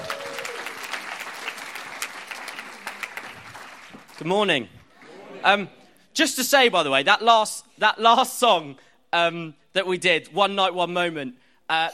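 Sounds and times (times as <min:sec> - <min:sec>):
audience applause welcoming a speaker: 0:00.0 - 0:04.3
speech: 0:04.2 - 0:04.8, 0:05.4 - 0:11.9.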